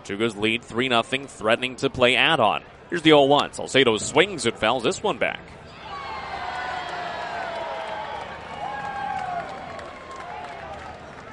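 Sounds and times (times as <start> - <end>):
speech: 0.0 - 5.6
baseball crowd cheering: 5.6 - 11.3.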